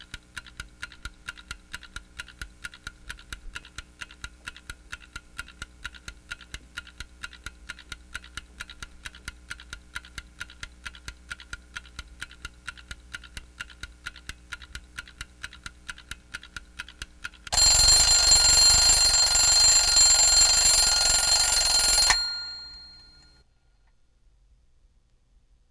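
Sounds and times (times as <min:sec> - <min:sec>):
ticking: 0:00.0 - 0:23.2
alarm ringing: 0:17.5 - 0:23.4.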